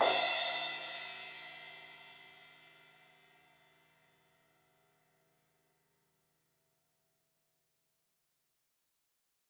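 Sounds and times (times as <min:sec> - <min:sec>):
16-inch crash cymbal hit on the edge: 0:00.0 - 0:01.8.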